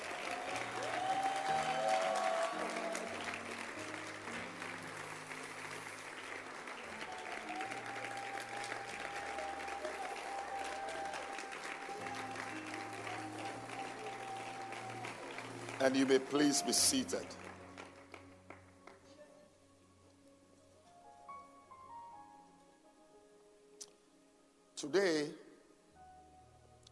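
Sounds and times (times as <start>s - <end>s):
audience clapping hands: 0.0s - 19.2s
speech: 15.9s - 17.5s.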